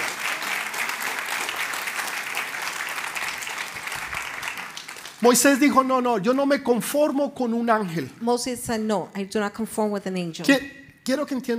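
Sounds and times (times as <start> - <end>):
loud sustained applause from a large audience: 0.0 - 5.8
speech: 5.2 - 11.5.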